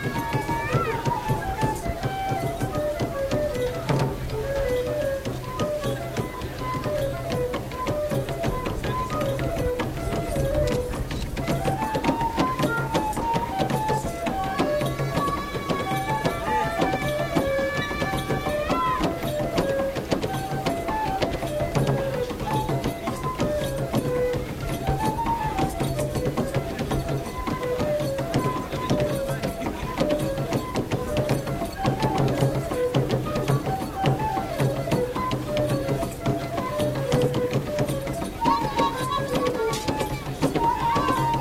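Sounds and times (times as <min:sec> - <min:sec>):
women performing traditional music from Kenya: 0:00.0 - 0:41.4.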